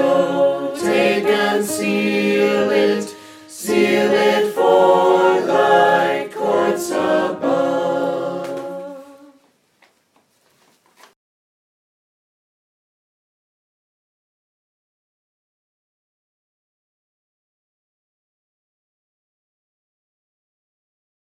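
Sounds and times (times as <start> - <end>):
soprano singing a hymn: 0.0 - 9.5.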